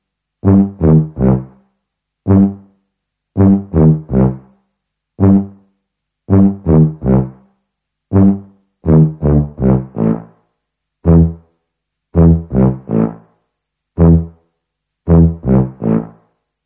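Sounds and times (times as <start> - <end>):
tuba: 0.4 - 2.8, 3.4 - 4.6, 5.2 - 5.7, 6.3 - 7.5, 8.1 - 10.4, 11.0 - 11.5, 12.1 - 13.4, 14.0 - 14.4, 15.1 - 16.3.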